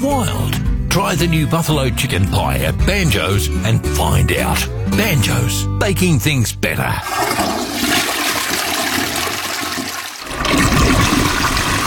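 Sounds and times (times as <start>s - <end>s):
speech: 0.0s - 7.6s
toilet flushing: 7.0s - 11.8s.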